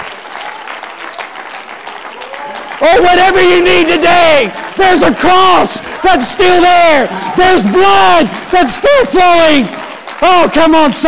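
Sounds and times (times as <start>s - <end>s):
audience clapping hands: 0.0s - 11.0s
speech: 2.8s - 11.0s.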